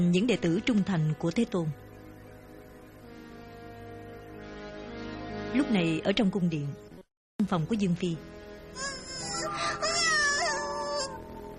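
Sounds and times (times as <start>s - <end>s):
speech: 0.0s - 1.8s, 5.5s - 9.0s
baby crying in pain from an infected finger: 8.8s - 11.5s.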